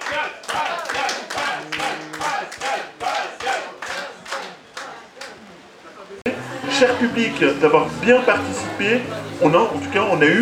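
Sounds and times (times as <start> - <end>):
crowd clapping in unison: 0.0 - 5.4
murmur of voices: 0.0 - 10.4
speech: 0.1 - 1.7, 6.8 - 10.4.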